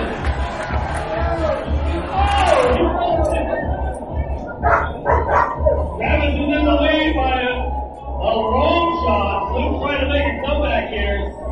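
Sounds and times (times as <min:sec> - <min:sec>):
crowd cheering and yelling: 0:00.0 - 0:11.5
shouts: 0:00.6 - 0:03.8, 0:06.5 - 0:11.5.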